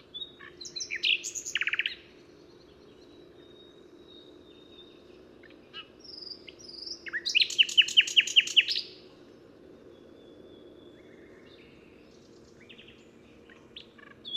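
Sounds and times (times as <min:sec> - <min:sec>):
common nightingale singing: 0:00.0 - 0:09.1, 0:09.9 - 0:14.3.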